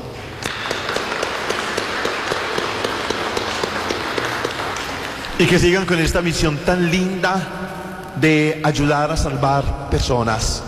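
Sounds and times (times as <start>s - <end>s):
audience applause: 0.4s - 6.3s
speech: 5.4s - 10.6s.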